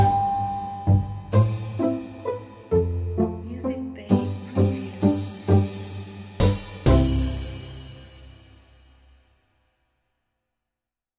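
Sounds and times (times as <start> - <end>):
Christmas waltz for kids: 0.0 - 8.3.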